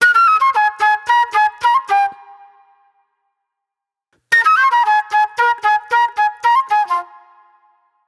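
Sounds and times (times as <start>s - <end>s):
raw funk flute: 0.0s - 2.4s, 4.3s - 7.3s.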